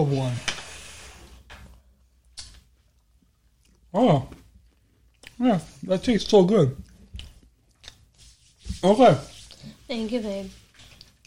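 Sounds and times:
speech: 0.0s - 0.5s, 3.9s - 4.4s, 5.4s - 6.8s, 8.8s - 9.3s, 9.9s - 10.6s
person chewing while eating birthday cookie cake: 2.4s - 5.4s, 6.8s - 8.1s.

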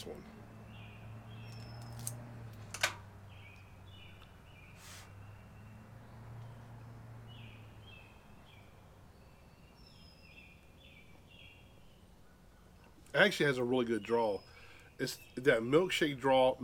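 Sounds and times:
cigar cutter snipping the tip off a Robusto cigar: 1.5s - 3.0s
speech: 13.2s - 16.6s.

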